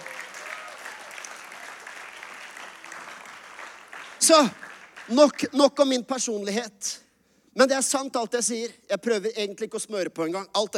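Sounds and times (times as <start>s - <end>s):
audience applause: 0.0s - 5.4s
speech: 4.2s - 7.0s, 7.6s - 10.7s.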